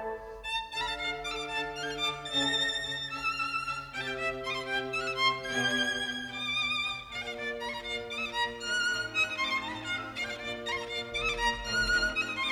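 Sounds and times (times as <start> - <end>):
violin and orchestra playing a concerto rondo: 0.0 - 12.5.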